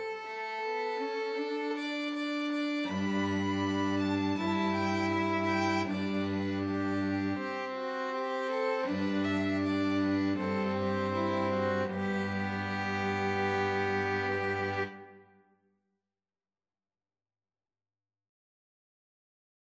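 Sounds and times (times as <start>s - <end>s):
two violins and cello playing a folk tune: 0.0s - 15.2s.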